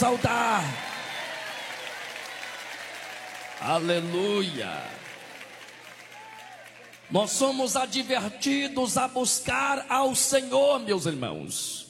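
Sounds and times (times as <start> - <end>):
speech: 0.0 - 0.9, 3.6 - 5.0, 7.1 - 11.8
audience applause: 0.0 - 7.6.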